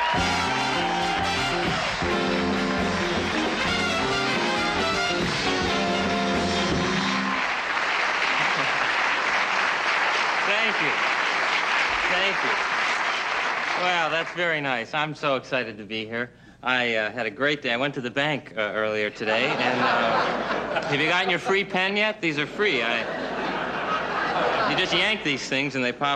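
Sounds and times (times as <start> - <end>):
band playing: 0.0 - 7.8
studio audience applauding on The Tonight Show: 0.0 - 14.6
laughter: 8.2 - 9.1, 19.2 - 21.7, 22.5 - 25.6
speech: 14.2 - 23.2, 24.8 - 26.1.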